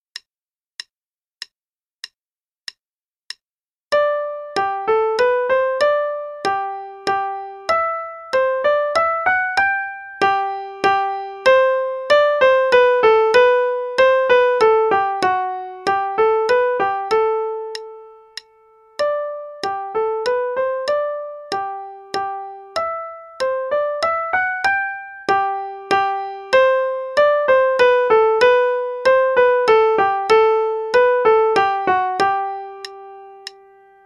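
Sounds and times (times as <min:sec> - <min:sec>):
piano minuet, right hand only: 0:03.9 - 0:34.0.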